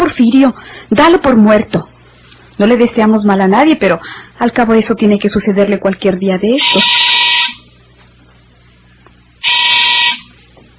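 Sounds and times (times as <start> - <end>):
speech: 0.1 - 1.9, 2.6 - 7.1
street doorbell with harsh electric buzz: 6.6 - 7.7, 9.4 - 10.4.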